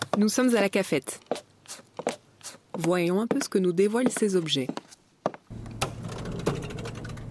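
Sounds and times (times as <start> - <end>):
speech: 0.2 - 1.2, 2.8 - 4.8
cash register whirring and clacking: 5.5 - 7.2.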